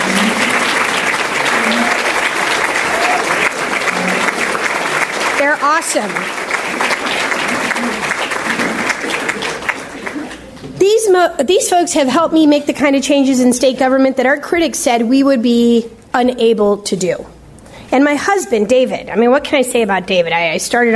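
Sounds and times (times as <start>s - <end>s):
crowd giving a round of applause: 0.0s - 10.6s
speech: 5.8s - 6.4s, 11.0s - 20.9s.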